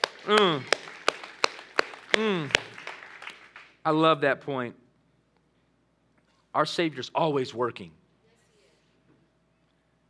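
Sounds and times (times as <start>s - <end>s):
audience clapping: 0.0s - 4.0s
speech: 0.2s - 0.8s, 2.2s - 2.6s, 3.9s - 4.8s, 6.6s - 8.0s.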